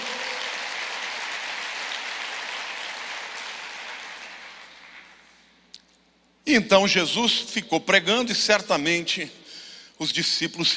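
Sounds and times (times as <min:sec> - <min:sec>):
audience applauding: 0:00.0 - 0:05.4
speech: 0:06.5 - 0:09.4, 0:10.0 - 0:10.7.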